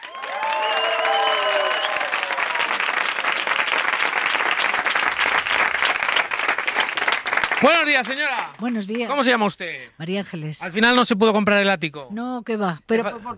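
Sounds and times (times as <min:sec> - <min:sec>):
crowd whooping: 0:00.0 - 0:03.9
huge crowd of auction participants applauding: 0:00.0 - 0:09.4
speech: 0:07.6 - 0:13.3.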